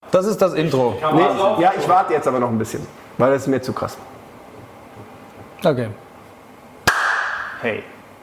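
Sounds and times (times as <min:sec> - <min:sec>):
speech: 0:00.1 - 0:04.2, 0:05.6 - 0:06.0, 0:07.6 - 0:08.0
single sharp hand clap: 0:06.9 - 0:07.6.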